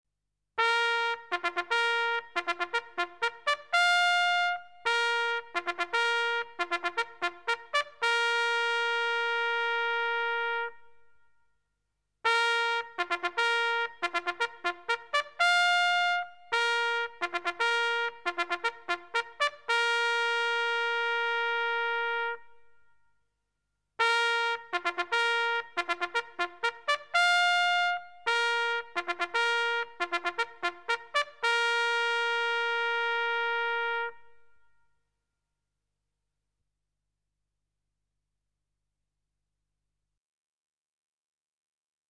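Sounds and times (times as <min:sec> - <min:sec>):
military trumpet call: 0:00.6 - 0:11.0, 0:12.3 - 0:22.6, 0:24.0 - 0:34.6.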